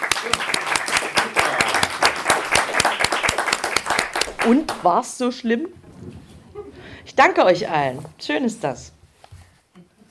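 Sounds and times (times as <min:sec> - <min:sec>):
audience applause: 0:00.0 - 0:04.9
speech: 0:00.2 - 0:00.6, 0:04.4 - 0:05.8, 0:07.1 - 0:09.0.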